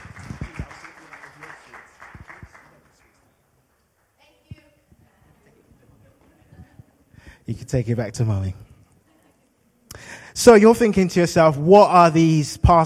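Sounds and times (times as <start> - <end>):
audience applause: 0.0 - 3.4
speech: 7.4 - 8.7, 10.4 - 12.8.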